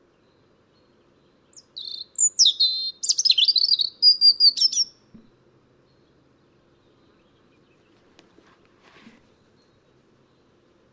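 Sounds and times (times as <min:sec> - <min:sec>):
European robin (Erithacus rubecula) song with high warbled phrases: 0:00.0 - 0:08.0.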